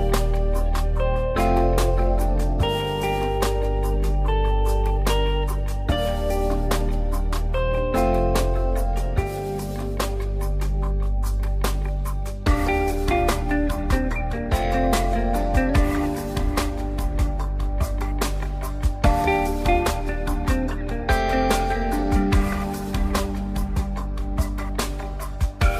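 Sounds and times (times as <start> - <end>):
IVR phone system background music: 0.0 - 25.7.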